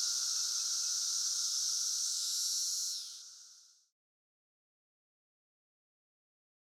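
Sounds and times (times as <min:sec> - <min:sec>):
periodical cicadas droning: 0:00.0 - 0:03.9.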